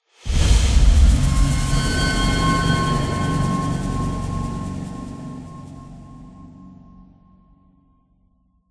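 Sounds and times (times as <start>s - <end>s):
defeat jingle: 1.2s - 7.2s.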